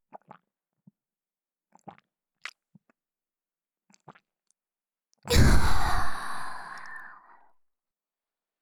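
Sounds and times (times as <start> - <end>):
swallowing heard close to the ear: 5.3 - 7.5.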